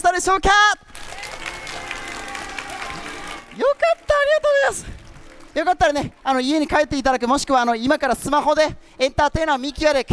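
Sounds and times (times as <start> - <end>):
speech: 0.0 - 0.8, 3.6 - 4.9, 5.5 - 10.1
audience applause after a crystal-ball entertainer's performance: 0.9 - 6.0.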